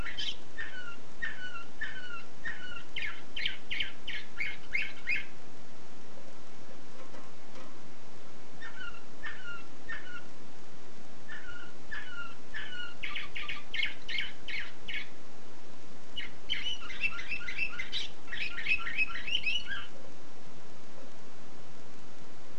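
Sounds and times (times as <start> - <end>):
canary chirping: 0.0 - 5.4, 8.6 - 10.3, 11.3 - 15.2, 16.2 - 20.0.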